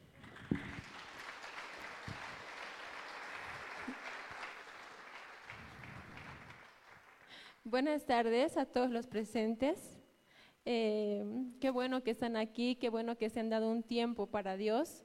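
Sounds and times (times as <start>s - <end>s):
audience applause: 0.1s - 7.5s
speech: 7.7s - 10.0s, 10.7s - 15.0s.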